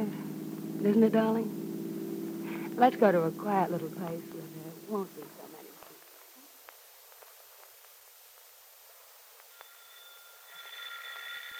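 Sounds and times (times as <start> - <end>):
speech: 0.8 - 1.6, 2.8 - 5.4
doorbell ringing: 9.5 - 11.5.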